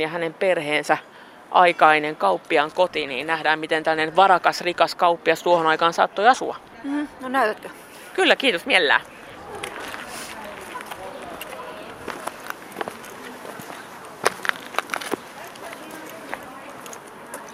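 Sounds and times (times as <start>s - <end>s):
speech: 0.0s - 9.6s
footsteps crossing an inner courtyard into an old merchant's house: 9.0s - 17.5s.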